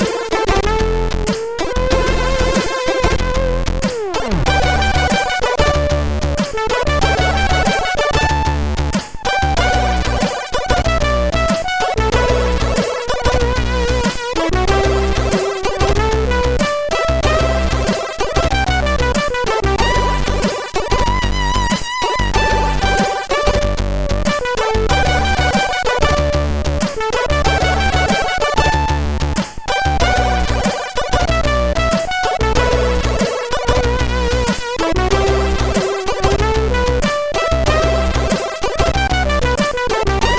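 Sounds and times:
drum from MOS6581R4 sound chip: 0:00.0 - 0:40.3.

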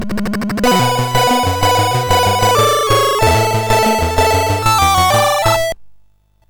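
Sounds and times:
MOS6581R3 SID chip game music: 0:00.2 - 0:05.8.

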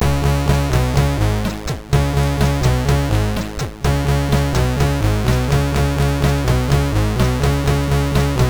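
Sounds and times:
music imitating the MOS6581R3 SID chip: 0:00.0 - 0:08.4.

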